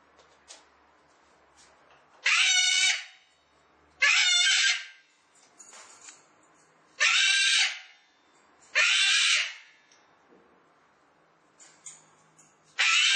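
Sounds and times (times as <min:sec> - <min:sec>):
cockatoo raspy drawn-out screeches: 0:02.2 - 0:03.2, 0:04.0 - 0:05.0, 0:07.0 - 0:07.9, 0:08.7 - 0:09.7, 0:12.8 - 0:13.1.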